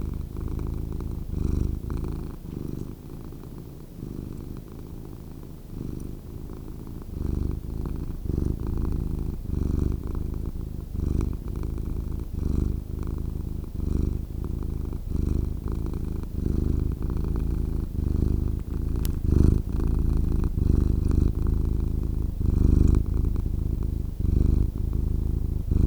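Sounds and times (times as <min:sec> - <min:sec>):
cat purring: 0:00.0 - 0:25.8
faint tick: 0:19.0 - 0:19.2.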